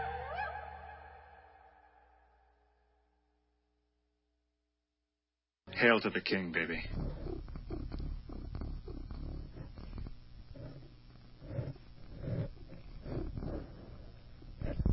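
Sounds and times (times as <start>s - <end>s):
speech: 5.8s - 7.3s
cat purring: 6.7s - 14.9s.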